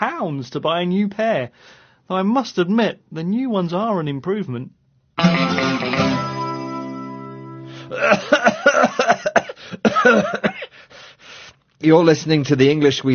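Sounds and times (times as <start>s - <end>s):
speech: 0.2s - 6.3s, 7.9s - 9.1s, 10.0s - 10.8s, 11.8s - 13.1s
coughing: 7.8s - 10.8s.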